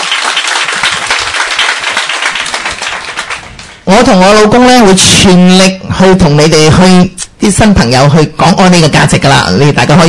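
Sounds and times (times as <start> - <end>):
crowd applause: 0.0 - 3.8
speech: 3.9 - 10.0.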